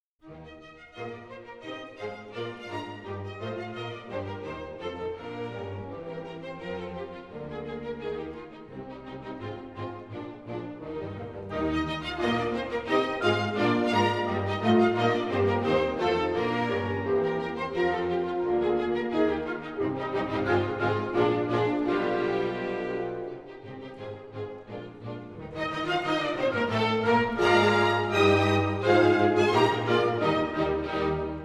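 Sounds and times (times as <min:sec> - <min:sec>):
piano concerto: 0:00.2 - 0:31.4.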